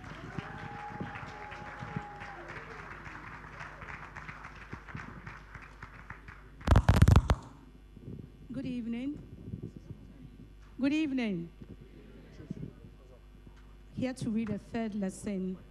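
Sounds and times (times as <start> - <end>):
audience applause: 0.0 - 7.5
speech: 10.8 - 11.6, 14.0 - 15.6.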